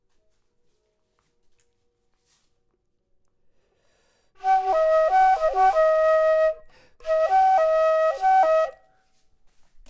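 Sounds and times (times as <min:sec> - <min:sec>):
low flute: 0:04.4 - 0:09.2.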